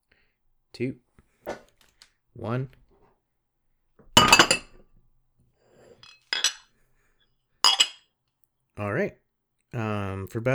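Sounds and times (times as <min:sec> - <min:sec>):
speech: 0:00.8 - 0:01.1, 0:02.4 - 0:02.8, 0:08.8 - 0:10.5
china clinking on china: 0:04.2 - 0:04.7, 0:06.0 - 0:06.7, 0:07.7 - 0:08.0
teacup flipped over onto a saucer clattering: 0:04.2 - 0:04.7, 0:06.0 - 0:06.6, 0:07.7 - 0:08.0.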